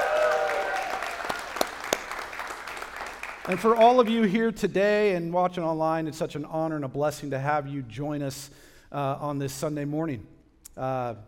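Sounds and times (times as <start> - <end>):
church congregation applauding at a Sunday morning service: 0.0 - 4.3
speech: 3.5 - 11.2.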